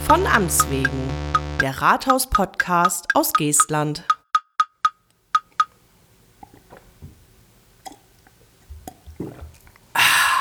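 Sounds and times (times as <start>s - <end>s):
speech: 0.1s - 4.2s
person drinking water from a glass: 6.4s - 10.4s.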